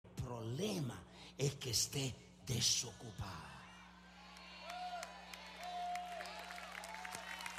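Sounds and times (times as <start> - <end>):
speech: 0.3 - 3.6
applause: 4.4 - 7.5.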